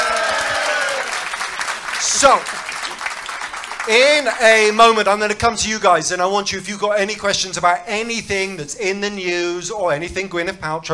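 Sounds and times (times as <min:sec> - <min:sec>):
audience applause: 0:00.0 - 0:04.7
speech: 0:02.2 - 0:02.7, 0:03.9 - 0:10.9.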